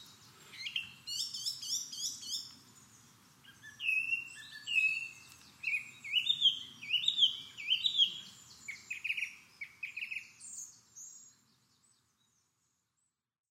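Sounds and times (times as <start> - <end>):
song thrush singing in woods: 0.0 - 13.3.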